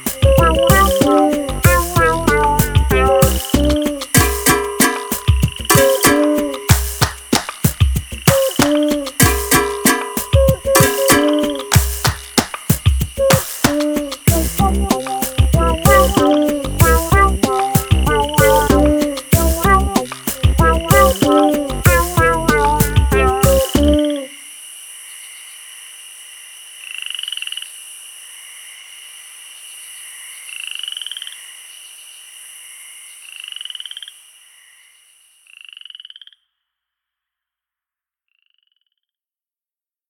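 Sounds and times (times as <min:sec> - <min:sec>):
instrumental music: 0:00.0 - 0:24.3.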